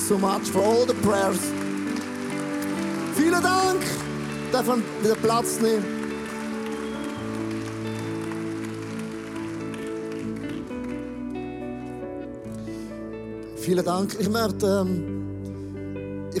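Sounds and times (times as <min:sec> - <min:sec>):
audience applause: 0:00.0 - 0:12.0
speech: 0:00.1 - 0:01.7, 0:03.2 - 0:06.0, 0:13.6 - 0:15.2.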